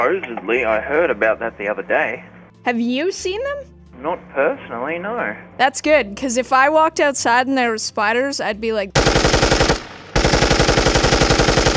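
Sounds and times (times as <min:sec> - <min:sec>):
speech: 0:00.1 - 0:09.8
machine-gun fire sound effect: 0:09.0 - 0:11.7.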